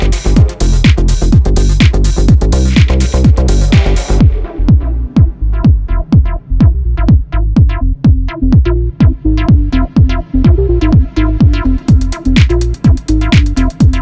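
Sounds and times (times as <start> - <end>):
bass techno music: 0.0 - 14.0.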